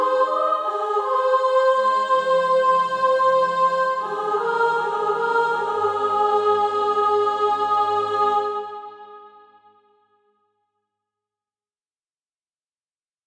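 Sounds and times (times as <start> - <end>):
soprano singing practice music: 0.0 - 9.2.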